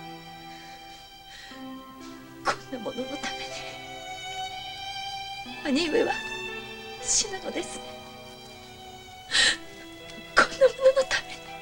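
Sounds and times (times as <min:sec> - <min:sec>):
speech: 0:02.7 - 0:03.8, 0:05.5 - 0:06.3, 0:07.0 - 0:08.0
younger sister crying and whimpering: 0:09.3 - 0:11.4.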